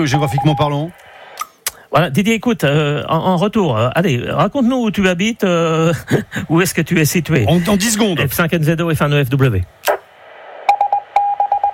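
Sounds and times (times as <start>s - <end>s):
beep tones before a radio transmission: 0.0s - 0.7s, 10.7s - 11.7s
speech: 0.0s - 1.0s, 1.9s - 9.9s.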